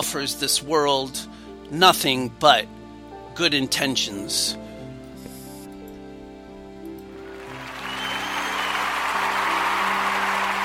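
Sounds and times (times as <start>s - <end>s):
speech: 0.1s - 2.8s, 3.4s - 4.6s
crowd applause: 7.2s - 10.6s.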